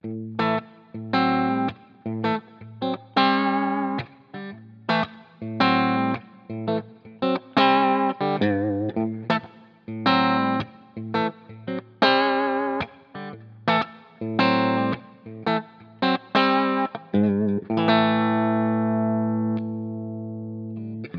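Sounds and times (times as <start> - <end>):
clean guitar through a vintage basketweave 4x12 cabinet: 0.0 - 21.1.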